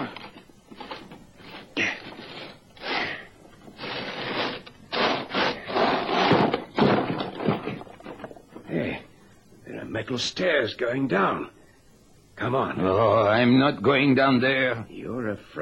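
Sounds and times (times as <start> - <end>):
heavy steel trapdoor being wrenched open: 3.7 - 8.7
speech: 10.0 - 11.6, 12.4 - 15.6.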